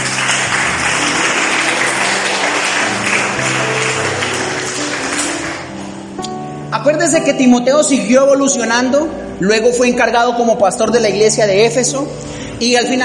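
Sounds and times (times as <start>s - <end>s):
audience applause: 0.0s - 6.1s
speech: 7.0s - 13.0s.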